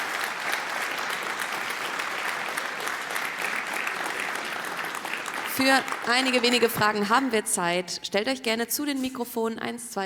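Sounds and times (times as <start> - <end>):
audience applause: 0.0 - 6.8
speech: 5.6 - 10.0.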